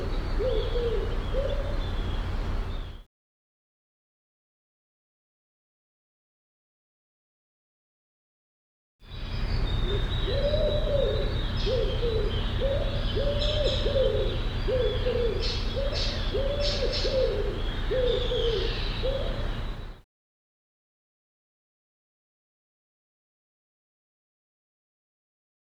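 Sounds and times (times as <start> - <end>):
low hooting arched bird calls: 0.0 - 3.0, 9.1 - 20.0.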